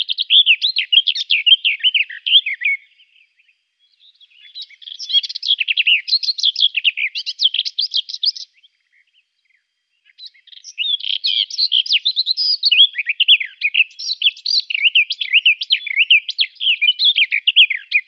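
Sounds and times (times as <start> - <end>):
garden warbler song: 0.0 - 18.0.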